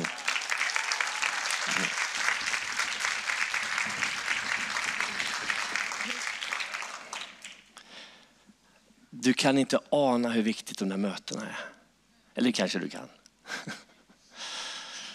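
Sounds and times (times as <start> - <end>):
warm applause from audience: 0.0 - 7.8
speech: 9.2 - 11.7, 12.4 - 13.8.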